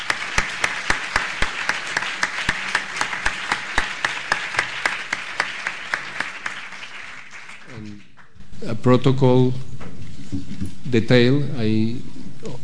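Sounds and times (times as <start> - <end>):
audience applause: 0.0 - 8.3
speech: 8.6 - 9.7, 10.3 - 12.6.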